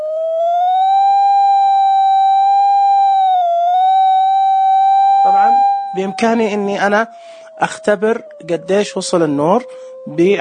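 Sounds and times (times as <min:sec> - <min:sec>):
light tester's electronic bell tone: 0:00.0 - 0:07.0
speech: 0:06.0 - 0:10.3.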